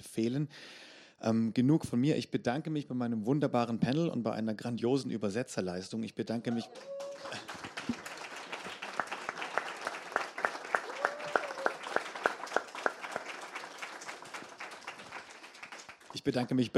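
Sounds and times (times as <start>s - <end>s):
speech: 0.1s - 8.0s, 16.2s - 16.7s
audience applause: 6.6s - 16.4s.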